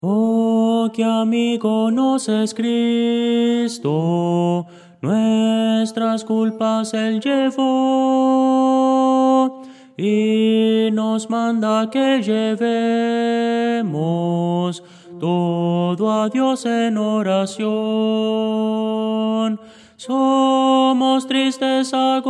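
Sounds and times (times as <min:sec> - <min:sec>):
tenor singing: 0:00.0 - 0:22.2.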